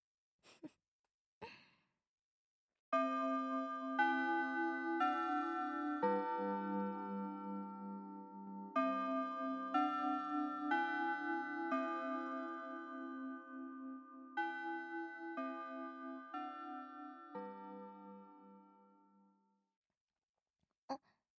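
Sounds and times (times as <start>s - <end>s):
school chime melody: 3.0s - 18.6s.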